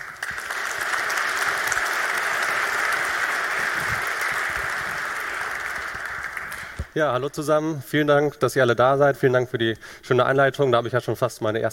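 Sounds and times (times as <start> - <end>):
audience applause: 0.0 - 7.0
speech: 7.0 - 11.7.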